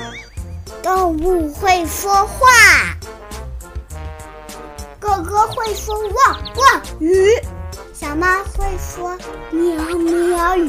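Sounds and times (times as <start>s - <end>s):
speech: 0.9s - 3.0s, 5.1s - 10.6s
duck quacking: 5.2s - 6.8s.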